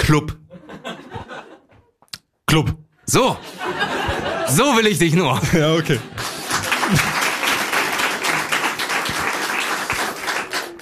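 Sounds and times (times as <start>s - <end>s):
speech: 0.1s - 0.4s, 2.5s - 6.2s, 6.9s - 7.1s
laughter: 0.5s - 2.0s, 3.2s - 10.7s
crowd applause: 5.7s - 10.7s.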